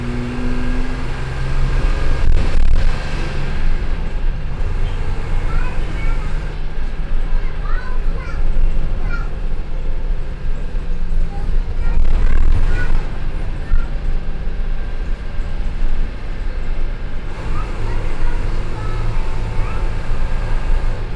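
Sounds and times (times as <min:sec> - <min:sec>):
bus interior ambience in Brazil: 0:00.0 - 0:21.1.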